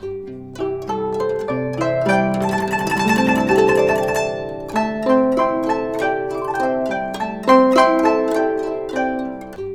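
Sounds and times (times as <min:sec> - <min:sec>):
guqin: 0:00.0 - 0:09.7.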